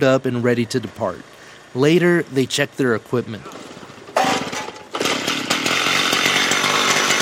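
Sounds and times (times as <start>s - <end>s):
speech: 0.0s - 3.6s
power saw cutting during rescue drill: 3.4s - 7.2s.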